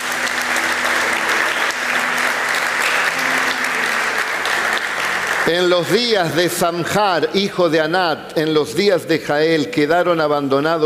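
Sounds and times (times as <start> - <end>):
audience applause: 0.0 - 6.8
speech: 5.5 - 10.8.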